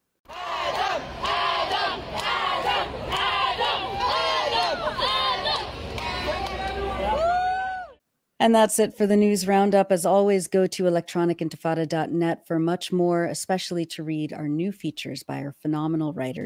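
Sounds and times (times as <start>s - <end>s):
welcoming committee crowd cheering and chanting for a child arriving for medical treatment: 0.3s - 8.0s
speech: 8.4s - 16.4s.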